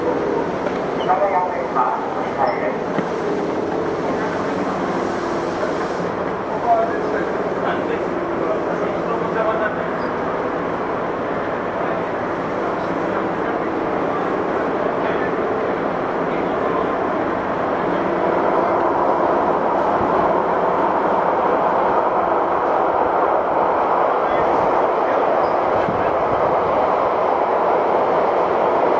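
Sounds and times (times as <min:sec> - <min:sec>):
Tokyu 8500 series train running toward Azamino: 0:00.0 - 0:28.9.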